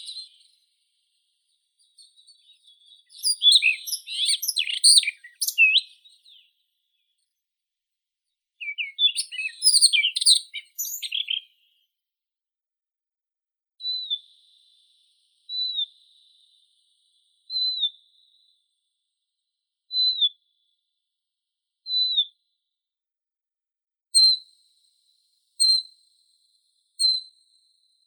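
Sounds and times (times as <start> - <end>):
Siberian rubythroat Luscinia calliope singing: 0.0 - 0.5, 1.8 - 6.5, 8.6 - 11.5.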